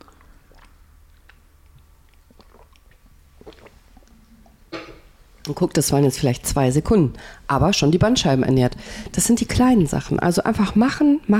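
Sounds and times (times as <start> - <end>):
person drinking water: 0.0 - 5.2
low steady hum: 0.0 - 11.3
speech: 5.5 - 11.3.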